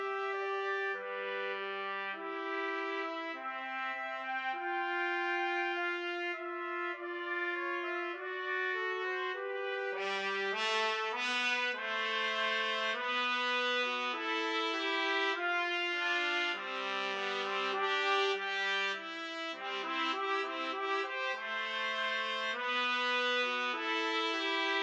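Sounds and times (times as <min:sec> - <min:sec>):
trumpet duet playing a wedding march: 0:00.0 - 0:24.8.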